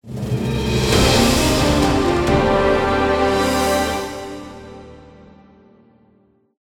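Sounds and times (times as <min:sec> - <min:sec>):
result victory jingle: 0:00.4 - 0:05.4.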